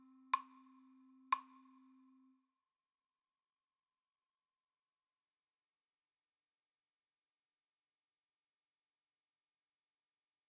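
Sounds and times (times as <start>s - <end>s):
slow Christmas tune on guitar: 0.0s - 2.3s.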